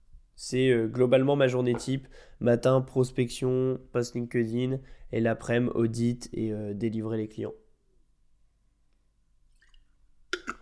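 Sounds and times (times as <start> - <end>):
speech: 0.4 - 7.6
person sipping water in short wet gulps: 9.5 - 10.6.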